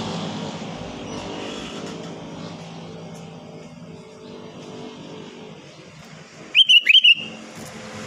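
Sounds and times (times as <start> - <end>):
Sooty-headed bulbul giving liquid chattering whistled phrases: 6.5 - 7.4.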